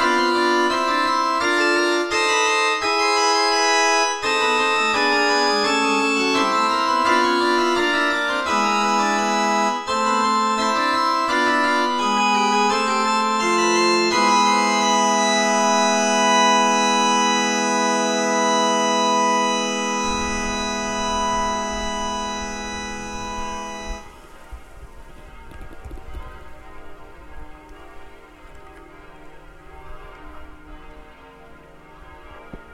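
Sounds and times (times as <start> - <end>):
glockenspiel: 0.0 - 24.1.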